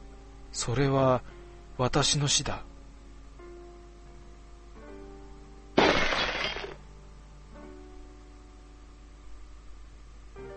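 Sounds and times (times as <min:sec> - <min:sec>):
speech: 0:00.6 - 0:02.7
glass window shattering: 0:05.8 - 0:06.8.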